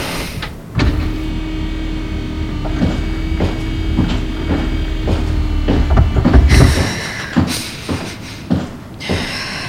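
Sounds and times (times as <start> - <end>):
door opening: 0.0 - 7.0.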